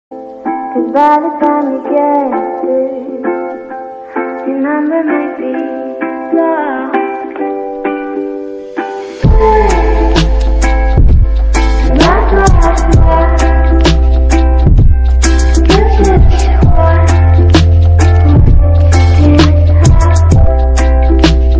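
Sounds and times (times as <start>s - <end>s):
English lofi ringtone music: 0.1s - 21.5s.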